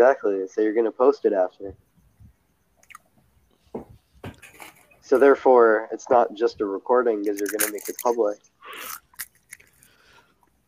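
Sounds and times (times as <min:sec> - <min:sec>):
speech: 0:00.0 - 0:01.9, 0:05.1 - 0:09.0
crunchy cinnamon twists being chewed: 0:02.8 - 0:03.0, 0:08.7 - 0:10.0.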